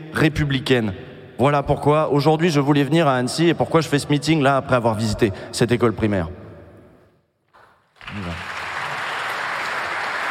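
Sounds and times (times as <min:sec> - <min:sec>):
speech: 0:00.2 - 0:06.4
audience applause: 0:08.0 - 0:10.2.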